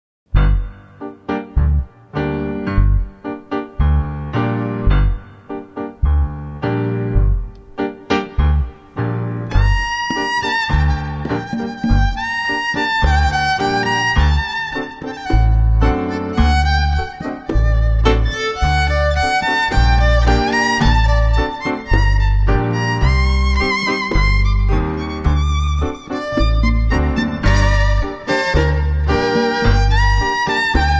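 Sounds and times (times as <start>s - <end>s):
Klezmer melody: 0.3s - 30.9s.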